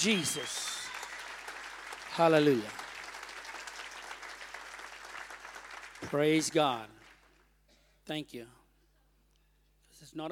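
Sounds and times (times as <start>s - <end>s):
speech: 0.0s - 0.7s, 2.2s - 2.8s, 6.1s - 7.0s, 8.1s - 8.6s, 10.0s - 10.3s
church congregation clapping as a clap offering during morning worship: 0.0s - 7.6s.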